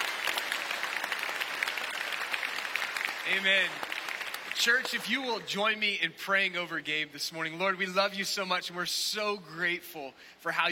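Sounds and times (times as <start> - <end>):
church audience applauding: 0.0 - 5.4
speech: 3.3 - 3.9, 4.6 - 10.7.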